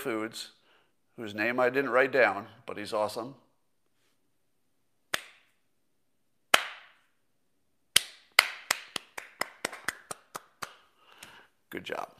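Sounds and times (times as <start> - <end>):
speech: 0.0 - 0.6, 1.2 - 3.4, 11.7 - 12.1
slow clap: 5.1 - 5.6, 6.5 - 7.1, 7.9 - 11.4.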